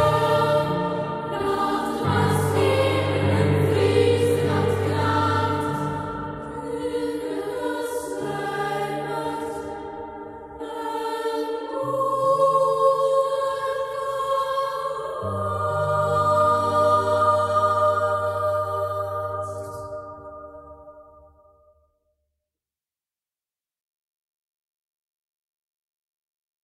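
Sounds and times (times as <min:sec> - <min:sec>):
children's choir singing: 0:00.0 - 0:21.2
piano: 0:00.0 - 0:21.7.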